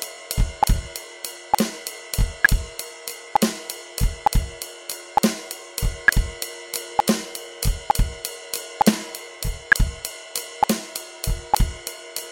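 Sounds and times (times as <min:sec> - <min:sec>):
drummer playing a simple 12 8 rhythm: 0:00.3 - 0:00.9, 0:02.2 - 0:02.7, 0:03.4 - 0:04.5, 0:05.2 - 0:06.3, 0:07.0 - 0:08.2, 0:08.8 - 0:10.0, 0:11.2 - 0:11.8.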